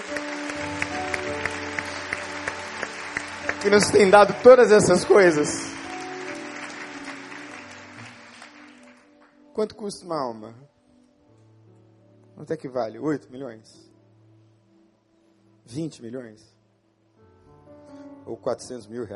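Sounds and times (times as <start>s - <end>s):
audience applause: 0.0s - 9.3s
speech: 3.6s - 5.8s, 9.6s - 10.7s, 12.4s - 13.9s, 15.7s - 16.5s, 18.3s - 19.1s.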